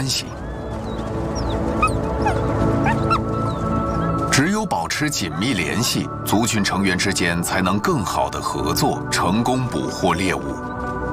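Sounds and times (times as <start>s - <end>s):
speech: 0.1s - 0.6s, 4.5s - 10.7s
arctic wolves yipping and whimpering while playing: 0.3s - 4.3s.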